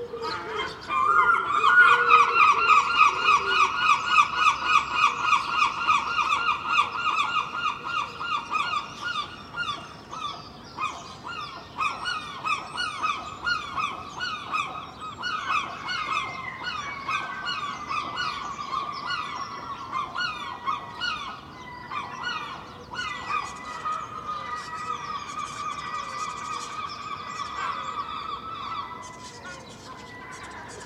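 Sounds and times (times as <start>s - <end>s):
other birds chattering: 0.0s - 30.8s
seagulls calling in Filey: 0.0s - 30.8s.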